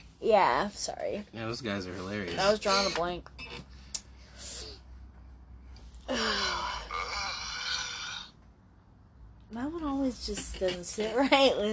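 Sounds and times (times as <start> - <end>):
speech: 0.2 - 3.7, 6.1 - 6.5, 9.5 - 11.7
yawn: 6.0 - 8.3.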